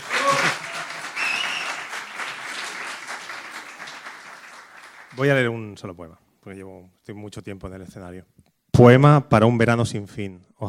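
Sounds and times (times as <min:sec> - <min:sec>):
audience applause: 0:00.0 - 0:05.3
speech: 0:05.2 - 0:10.6.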